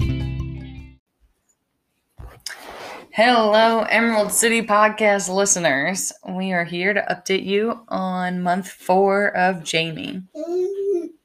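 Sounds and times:
speech: 0:03.2 - 0:10.8
baby boy babbling while playing by his ball pit: 0:10.3 - 0:11.2.

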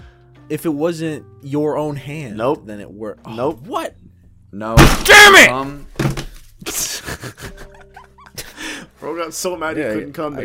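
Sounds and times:
speech: 0:00.5 - 0:05.9, 0:09.0 - 0:10.4
fist slamming on a desk: 0:04.8 - 0:05.4
laughter: 0:06.6 - 0:08.8.

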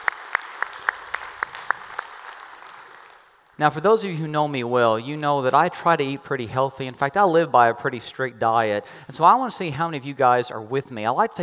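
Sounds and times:
church congregation applauding to welcome others: 0:00.0 - 0:03.8
speech: 0:03.6 - 0:11.4.

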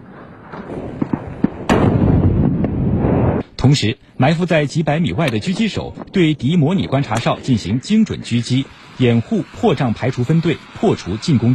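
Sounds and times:
artillery fire during a military exercise: 0:00.0 - 0:03.4
speech: 0:00.6 - 0:01.0, 0:03.6 - 0:11.5.

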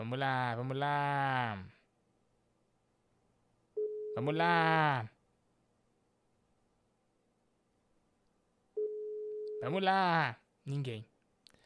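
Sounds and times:
speech: 0:00.0 - 0:01.8, 0:04.2 - 0:05.2, 0:09.6 - 0:11.1
unanswered phone call ringback tone: 0:03.8 - 0:04.2, 0:08.8 - 0:09.7.

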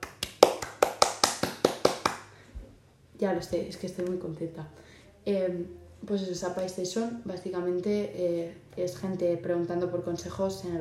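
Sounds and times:
hand clapping: 0:00.0 - 0:02.3
speech: 0:03.2 - 0:10.8.

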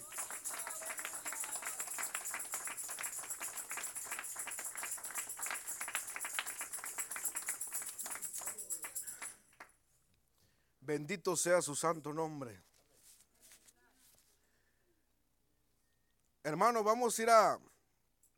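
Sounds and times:
crowd clapping: 0:00.0 - 0:09.8
speech: 0:10.9 - 0:12.7, 0:16.5 - 0:17.7.

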